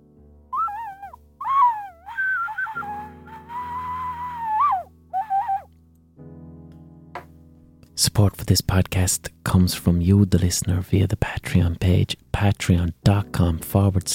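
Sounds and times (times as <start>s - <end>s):
high-pitched ocarina playing: 0.6s - 5.7s
speech: 8.1s - 14.1s.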